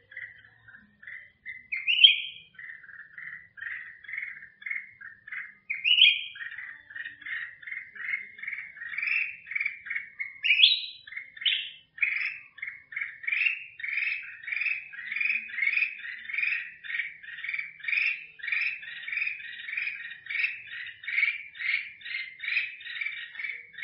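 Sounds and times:
black-crested bulbul singing: 0.0s - 23.8s.

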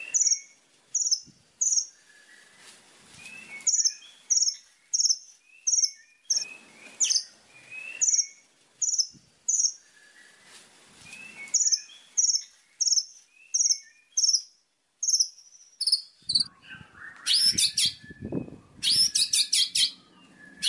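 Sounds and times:
white-rumped shama singing: 0.0s - 2.6s, 3.2s - 20.6s.

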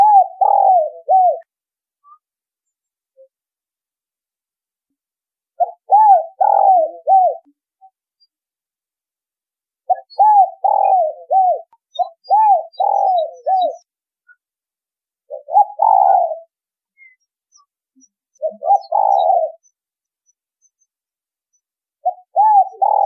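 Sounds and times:
spotted dove cooing: 0.0s - 1.5s, 5.6s - 7.5s, 9.9s - 13.9s, 15.3s - 16.5s, 18.4s - 19.6s, 22.0s - 23.0s.

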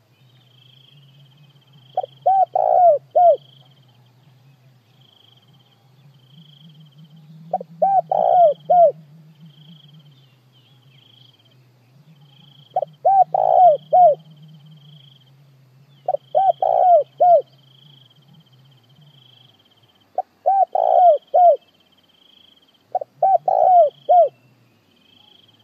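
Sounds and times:
low droning hum: 0.0s - 19.5s
high cricket trill: 0.4s - 4.2s, 4.8s - 25.6s
spotted dove cooing: 1.8s - 3.8s, 6.2s - 10.3s, 12.3s - 15.1s, 16.0s - 17.6s, 20.1s - 21.7s, 22.9s - 24.4s.

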